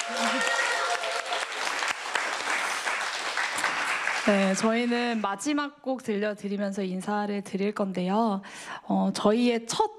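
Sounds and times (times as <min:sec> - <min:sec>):
audience applause: 0:00.0 - 0:05.2
speech: 0:04.2 - 0:09.9.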